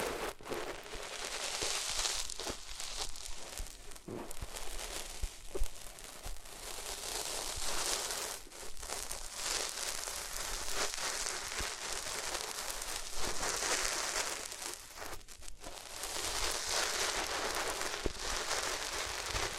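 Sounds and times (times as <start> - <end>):
scratchy rustle of rubbing against different materials: 0.0 - 19.5
sharp crackles and pops: 0.0 - 19.5
soft thumps: 4.1 - 4.5.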